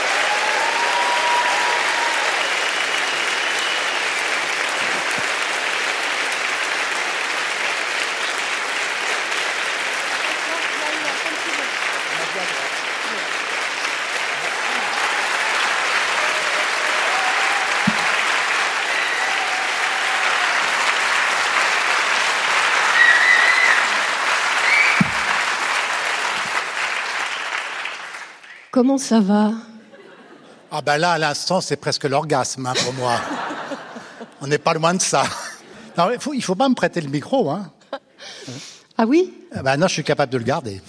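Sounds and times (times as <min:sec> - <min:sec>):
audience applause: 0:00.0 - 0:28.7, 0:32.8 - 0:36.0
speech: 0:28.8 - 0:29.7, 0:30.7 - 0:33.4, 0:34.4 - 0:35.4, 0:36.0 - 0:37.8, 0:38.5 - 0:40.8
laughter: 0:29.8 - 0:30.9, 0:32.7 - 0:36.2.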